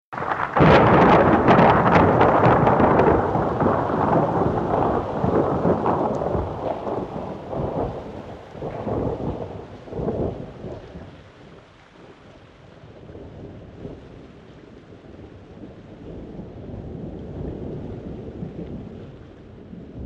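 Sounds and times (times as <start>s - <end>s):
strong thunder claps: 0.1s - 12.1s, 15.0s - 20.0s.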